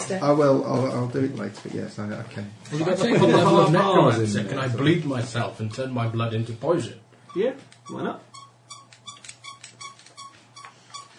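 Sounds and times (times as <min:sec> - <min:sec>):
speech: 0:00.1 - 0:08.3
pen squeaking: 0:07.3 - 0:11.1.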